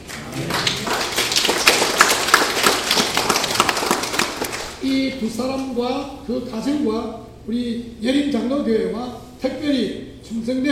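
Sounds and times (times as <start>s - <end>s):
audience applause: 0.0s - 4.8s
speech: 4.8s - 10.7s.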